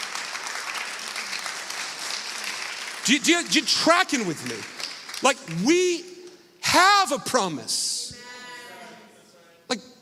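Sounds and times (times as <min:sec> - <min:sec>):
audience applause: 0:00.0 - 0:05.8
speech: 0:03.1 - 0:07.9.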